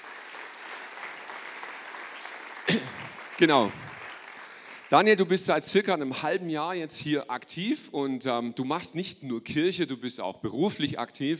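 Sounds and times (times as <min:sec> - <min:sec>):
audience applause: 0:00.0 - 0:05.2
speech: 0:02.7 - 0:03.8, 0:04.9 - 0:11.3.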